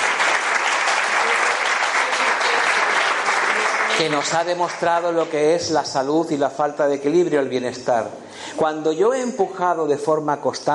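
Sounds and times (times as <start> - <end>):
audience applause: 0.0 - 5.4
speech: 4.0 - 10.7.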